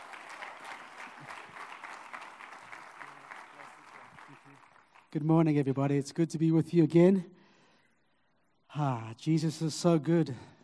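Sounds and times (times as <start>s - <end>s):
audience applause: 0.0s - 5.2s
speech: 5.1s - 7.4s, 8.8s - 10.5s.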